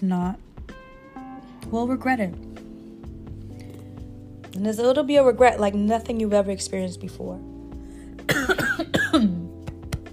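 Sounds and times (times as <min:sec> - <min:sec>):
speech: 0:00.0 - 0:00.5, 0:01.7 - 0:02.6, 0:04.6 - 0:07.5
person coughing: 0:08.3 - 0:09.6.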